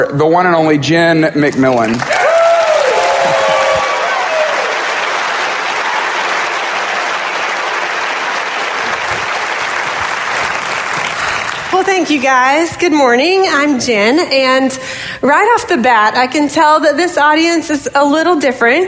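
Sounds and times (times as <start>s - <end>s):
speech: 0.0s - 2.2s, 12.0s - 18.8s
audience applause welcoming a speaker to the stage: 1.7s - 12.4s.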